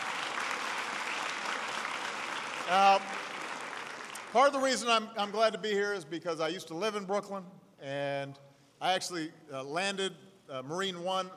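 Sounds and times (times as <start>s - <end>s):
audience applause: 0.0s - 4.6s
speech: 2.7s - 3.1s, 4.3s - 11.3s.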